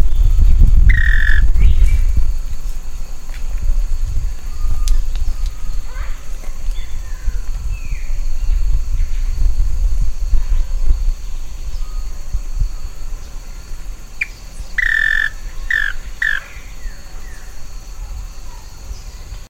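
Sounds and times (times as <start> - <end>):
steady low rumbling noise: 0.0 - 19.4
harsh nasal bird squawk: 0.9 - 1.8, 14.2 - 16.8.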